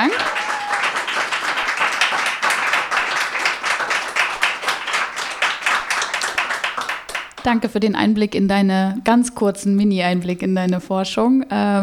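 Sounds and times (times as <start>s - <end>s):
applause: 0.0s - 7.6s
speech: 7.4s - 11.8s.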